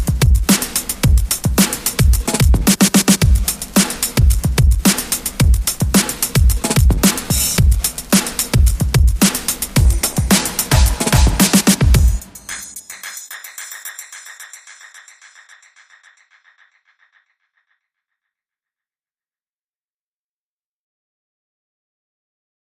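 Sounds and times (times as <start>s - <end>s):
music beat: 0.0s - 17.4s.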